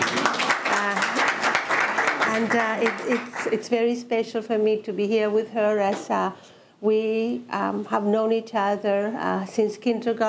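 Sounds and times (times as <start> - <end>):
audience applause: 0.0 - 3.5
speech: 2.4 - 10.2.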